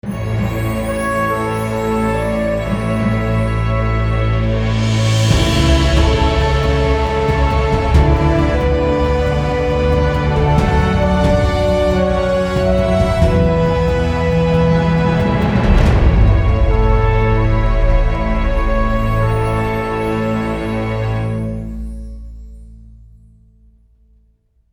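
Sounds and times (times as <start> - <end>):
epic sci-fi music: 0.0 - 22.8.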